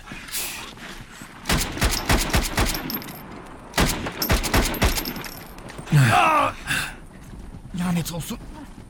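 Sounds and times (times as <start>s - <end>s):
gunfire bursts: 1.5s - 3.1s, 3.7s - 5.2s
speech: 7.8s - 8.5s.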